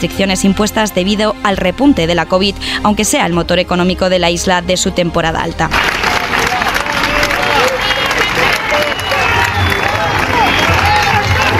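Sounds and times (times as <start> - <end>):
speech: 0.0 - 6.4
health workers protesting and shouting in Puerta del Sol in Madrid: 6.1 - 11.5.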